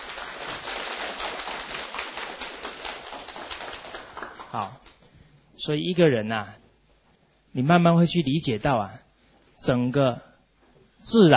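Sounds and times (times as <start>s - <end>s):
audience applause: 0.0s - 4.8s
speech: 4.5s - 4.8s, 5.6s - 6.6s, 7.6s - 9.0s, 9.6s - 10.3s, 11.0s - 11.3s.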